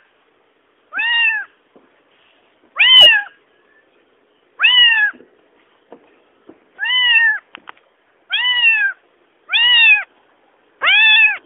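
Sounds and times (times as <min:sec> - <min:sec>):
cat meowing: 0:00.9 - 0:01.6, 0:02.8 - 0:03.4, 0:04.6 - 0:05.2, 0:06.8 - 0:07.4, 0:08.3 - 0:10.1, 0:10.8 - 0:11.4.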